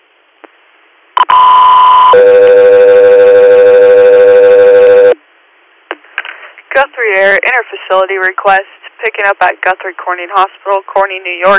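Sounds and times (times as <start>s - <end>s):
two-part dispatch alert tone: 1.2s - 5.2s
speech: 7.0s - 11.5s.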